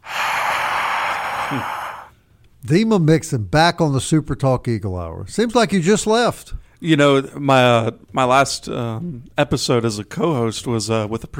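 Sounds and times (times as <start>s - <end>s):
voice exhaling imitating crowd noise: 0.0s - 2.1s
speech: 1.5s - 1.8s, 2.6s - 11.3s.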